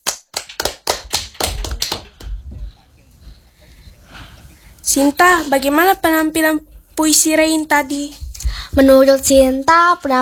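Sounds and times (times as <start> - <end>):
hand clapping: 0.0 - 2.4
speech: 4.9 - 8.2, 8.8 - 10.1.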